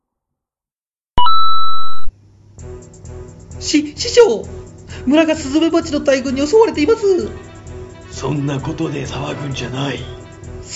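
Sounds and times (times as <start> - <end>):
electronic beep tone: 1.2 - 2.1
speech: 2.8 - 7.5, 8.2 - 10.7.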